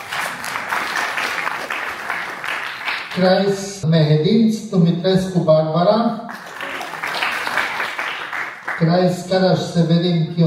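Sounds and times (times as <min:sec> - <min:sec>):
audience applause: 0:00.0 - 0:03.5, 0:06.3 - 0:08.9
speech: 0:03.2 - 0:06.3, 0:08.8 - 0:10.4.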